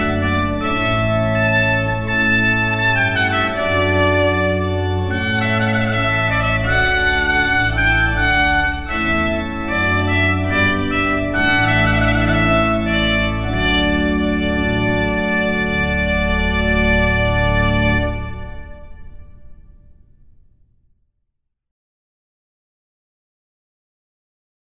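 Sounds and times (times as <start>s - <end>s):
jazz band playing: 0.0s - 18.7s.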